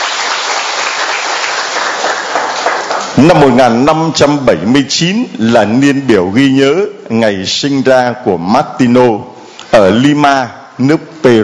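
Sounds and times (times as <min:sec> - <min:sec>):
applause: 0:00.0 - 0:03.6
speech: 0:03.2 - 0:11.4.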